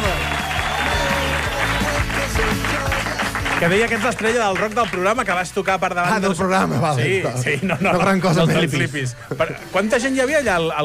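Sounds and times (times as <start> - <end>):
audience applause: 0.0 - 5.5
speech: 3.6 - 10.8
laughter: 7.0 - 9.9.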